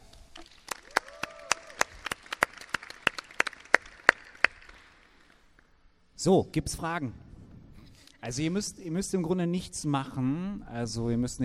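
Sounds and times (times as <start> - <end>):
scattered applause from a small audience: 0.6 - 5.2
speech: 6.2 - 7.2, 8.2 - 11.4.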